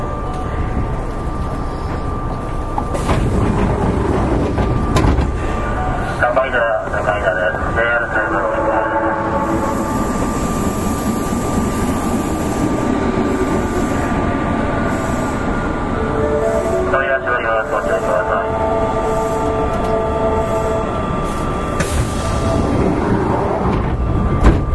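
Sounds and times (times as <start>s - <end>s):
Kintetsu 7000 series train rumble and rattle: 0.0s - 24.7s
clunks: 1.9s - 5.4s, 23.6s - 24.7s.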